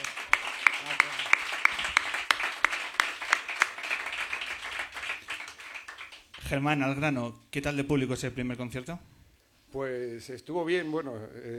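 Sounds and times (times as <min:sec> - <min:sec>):
applause: 0:00.0 - 0:06.6
speech: 0:06.5 - 0:09.1, 0:09.7 - 0:11.5.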